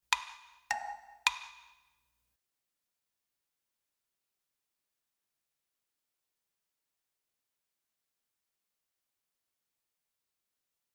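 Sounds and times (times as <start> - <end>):
clock ticking: 0.1 - 1.7.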